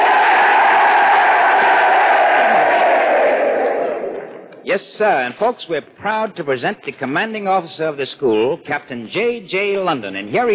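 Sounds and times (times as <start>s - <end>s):
crowd of sailors cheering: 0.0s - 4.4s
speech: 4.7s - 10.5s.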